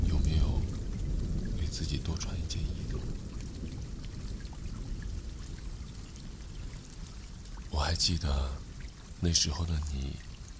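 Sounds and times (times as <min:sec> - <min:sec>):
low rumbling: 0:00.0 - 0:08.9
heavy rain during a thunderstorm: 0:00.0 - 0:10.5
speech: 0:01.8 - 0:03.8, 0:07.9 - 0:08.6, 0:09.2 - 0:10.3.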